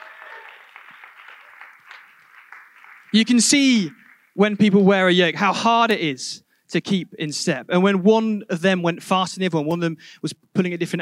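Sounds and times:
audience round of applause: 0.0 - 4.4
speech: 3.1 - 10.9.

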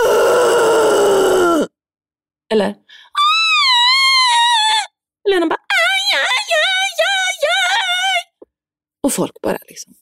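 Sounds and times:
high-pitched vocal wailing: 0.0 - 1.7, 3.1 - 5.0, 5.6 - 8.4
voice imitating a deep demonic roar: 0.0 - 1.7
speech: 2.5 - 3.0, 5.3 - 5.6, 9.1 - 10.0.

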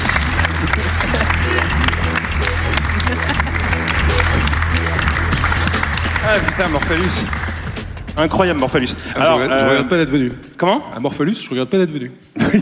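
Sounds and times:
laughter: 0.0 - 5.0, 12.4 - 12.6
audience applause: 0.0 - 8.6
speech: 6.3 - 7.4, 8.2 - 12.6.

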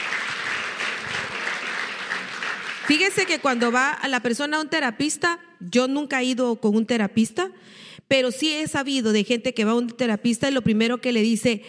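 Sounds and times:
audience applauding: 0.0 - 3.9
speech: 2.9 - 11.6.

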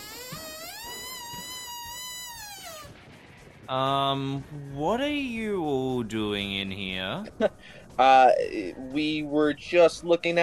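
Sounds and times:
door creaking open: 0.0 - 3.0
speech: 3.7 - 10.4.

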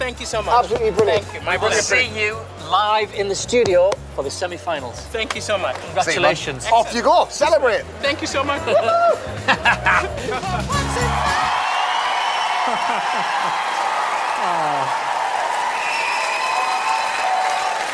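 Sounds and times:
speech: 0.1 - 11.6, 12.7 - 13.7
laughter: 8.1 - 11.2, 12.5 - 15.1
cheers and whoops: 8.6 - 9.9, 10.7 - 17.9
audience applause: 10.7 - 17.9.

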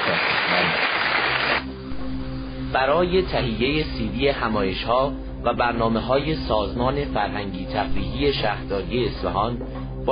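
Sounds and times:
crowd applause: 0.0 - 1.6
low tonal hum: 1.6 - 10.1
speech: 2.8 - 10.1.

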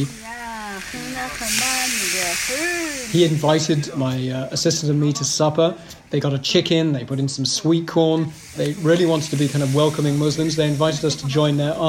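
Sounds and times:
food sizzling in a bubbling wok: 0.0 - 4.9, 8.2 - 11.8
speech: 0.0 - 11.8.

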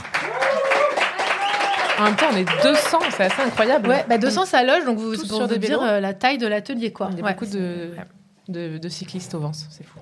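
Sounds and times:
audience applause: 0.0 - 4.3
voices cheering: 0.2 - 3.1
speech: 2.0 - 10.0.

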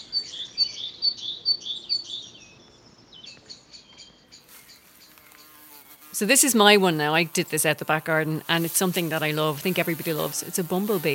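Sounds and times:
birds singing from a city balcony: 0.0 - 6.2
speech: 6.2 - 11.1.

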